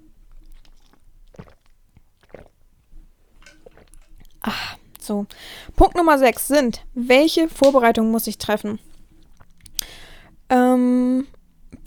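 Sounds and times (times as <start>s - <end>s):
person drinking water: 0.2s - 5.8s, 8.9s - 10.5s
speech: 4.5s - 8.9s.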